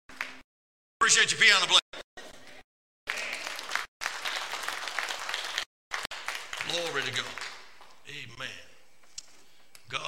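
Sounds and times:
audience clapping: 0:00.1 - 0:00.4, 0:03.1 - 0:08.0
speech: 0:01.1 - 0:02.1, 0:06.9 - 0:07.4.

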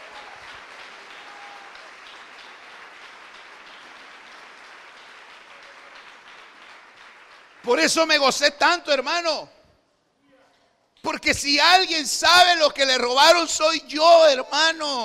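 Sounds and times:
audience clapping: 0:00.0 - 0:08.8
speech: 0:07.6 - 0:09.6, 0:11.0 - 0:15.0.

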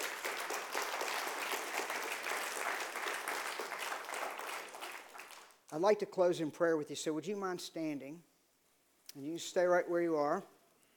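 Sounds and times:
audience applauding with hand claps: 0:00.0 - 0:05.7
speech: 0:05.7 - 0:08.3, 0:09.2 - 0:10.6.

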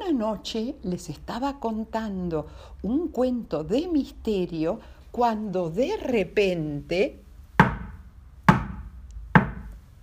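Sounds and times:
speech: 0:00.1 - 0:07.2
knocks on a door: 0:07.6 - 0:09.7.

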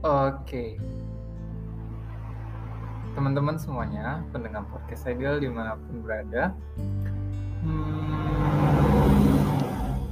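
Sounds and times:
speech: 0:00.0 - 0:01.0, 0:03.2 - 0:07.0, 0:07.6 - 0:08.8
car passing by on the road: 0:01.4 - 0:05.8, 0:07.6 - 0:10.1.

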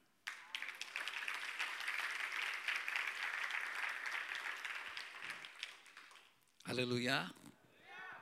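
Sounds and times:
audience clapping: 0:00.0 - 0:06.4
speech: 0:06.7 - 0:07.4.

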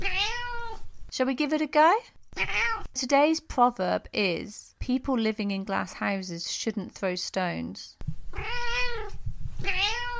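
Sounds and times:
cat meowing: 0:00.0 - 0:00.8, 0:02.4 - 0:02.9, 0:08.3 - 0:10.1
speech: 0:01.2 - 0:08.6
faint low rumble: 0:08.0 - 0:10.1.

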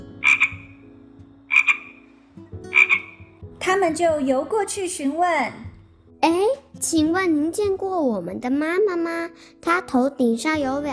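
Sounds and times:
frog croaking: 0:00.2 - 0:03.4
speech: 0:03.7 - 0:10.9.

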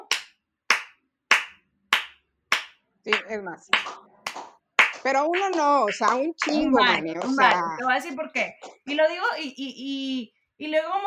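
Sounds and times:
hands clapping: 0:00.0 - 0:07.9
speech: 0:03.0 - 0:04.1, 0:05.0 - 0:11.0.

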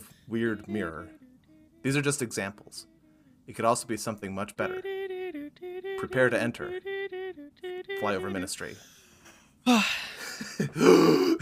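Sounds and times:
speech: 0:00.3 - 0:01.2, 0:01.8 - 0:02.9, 0:03.5 - 0:05.0, 0:06.0 - 0:06.9, 0:08.0 - 0:08.9, 0:09.6 - 0:11.4
person giving a huge gasp of air: 0:08.7 - 0:11.4.

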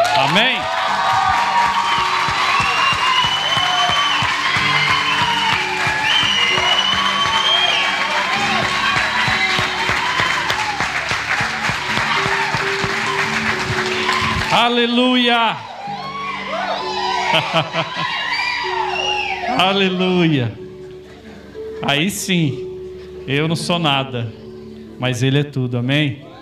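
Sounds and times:
audience applause and cheering: 0:00.0 - 0:20.0
speech: 0:14.6 - 0:16.0, 0:17.3 - 0:18.1, 0:19.6 - 0:20.6, 0:21.8 - 0:24.4, 0:25.0 - 0:26.3
laughter: 0:16.7 - 0:19.0, 0:20.7 - 0:21.8.

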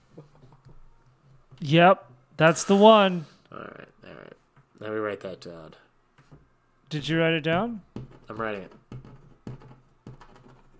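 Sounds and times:
speech: 0:01.6 - 0:03.3, 0:04.8 - 0:05.8, 0:06.9 - 0:08.8
fist pounding a desk: 0:07.5 - 0:10.6.

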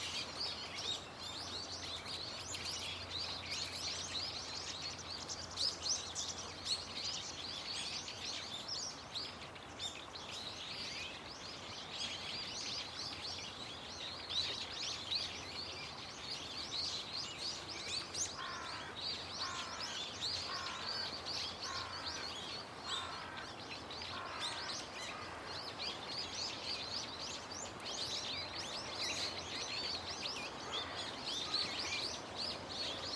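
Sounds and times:
bird chorus: 0:00.0 - 0:33.1.

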